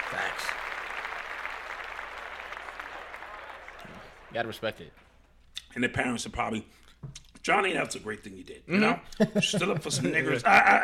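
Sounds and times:
hands clapping: 0.0 - 5.7
speech: 4.4 - 5.1, 5.8 - 10.8
laughter: 9.1 - 10.8.

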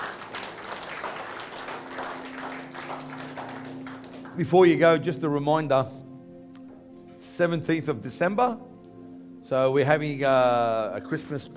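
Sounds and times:
audience clapping: 0.0 - 5.0
speech: 4.4 - 6.0, 7.4 - 8.7, 9.5 - 11.5.

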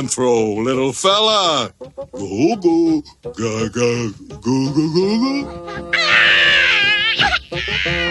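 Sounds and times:
speech: 0.0 - 6.3
baby crying and howling: 5.7 - 8.1.

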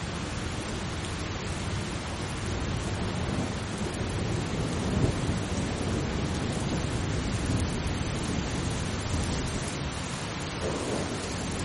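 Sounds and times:
steady rain hissing: 0.0 - 11.6
thunder rumbling: 3.0 - 11.6.

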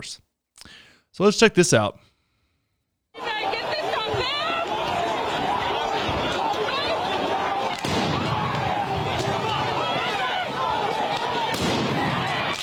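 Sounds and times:
speech: 0.0 - 2.1
laughter: 3.2 - 12.6
flashbangs fired at a crowd: 7.7 - 10.1, 11.2 - 12.6.

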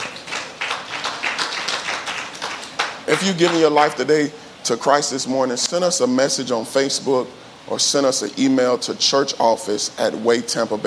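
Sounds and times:
hand clapping: 0.0 - 3.8
speech: 3.1 - 10.8.

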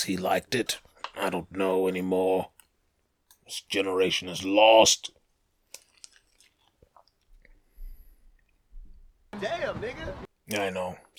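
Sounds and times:
speech: 0.0 - 2.6, 3.5 - 5.2, 9.4 - 11.1
person taking a swig of water: 5.6 - 8.7.

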